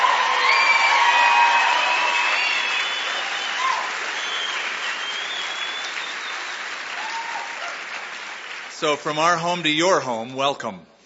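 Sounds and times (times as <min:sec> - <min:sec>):
whoops and cheers: 0:00.0 - 0:07.9
crowd clapping: 0:00.0 - 0:09.8
speech: 0:08.8 - 0:10.9.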